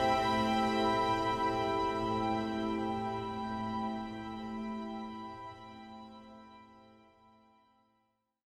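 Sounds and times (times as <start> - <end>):
acoustic music: 0.0 - 6.2.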